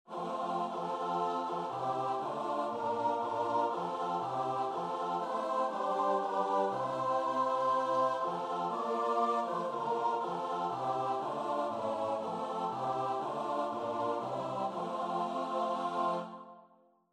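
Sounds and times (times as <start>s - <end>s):
choir singing: 0.1s - 16.8s.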